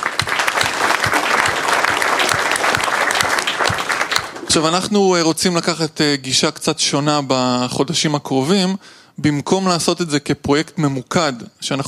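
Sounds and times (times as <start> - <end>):
audience applause: 0.0 - 4.8
speech: 4.5 - 11.8.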